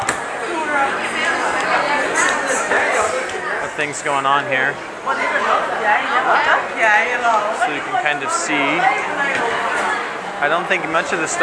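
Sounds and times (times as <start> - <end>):
street crowd noise: 0.0 - 11.4
speech: 3.8 - 11.4.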